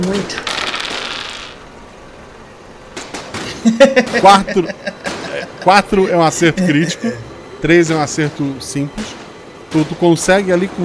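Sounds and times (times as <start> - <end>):
speech: 0.0 - 0.5, 3.6 - 5.0, 5.6 - 10.8
two dice rattling and tumbling: 0.4 - 1.6
laughter: 3.4 - 7.3.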